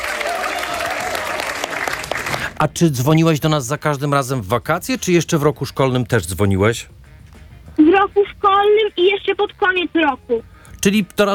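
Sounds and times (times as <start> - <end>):
faint voices or cheers: 0.0 - 2.3
crowd applauding: 0.0 - 2.6
speech: 2.6 - 7.0, 7.8 - 11.3.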